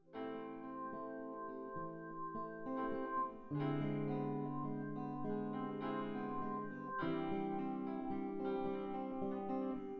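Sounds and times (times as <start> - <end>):
synth music mix without drums: 0.1 - 9.9.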